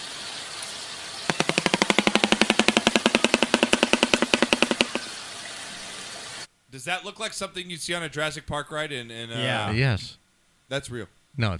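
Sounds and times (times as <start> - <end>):
shoebill stork clattering its bill in a played video: 1.3 - 5.1
speech: 6.8 - 11.5.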